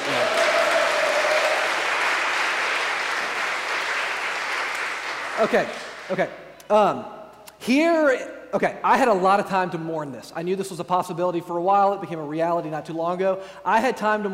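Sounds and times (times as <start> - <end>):
audience applause: 0.0 - 6.1
speech: 5.4 - 14.3.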